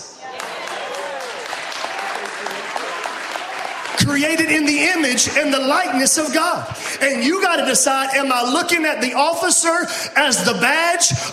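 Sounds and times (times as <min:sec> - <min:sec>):
crowd clapping: 0:00.2 - 0:07.8
speech: 0:04.0 - 0:11.3.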